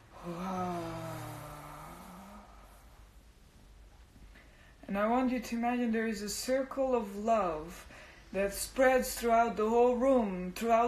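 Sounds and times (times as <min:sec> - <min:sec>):
person exhaling audibly during a guided meditation: 0:00.1 - 0:03.1
speech: 0:00.2 - 0:00.7, 0:04.9 - 0:10.8.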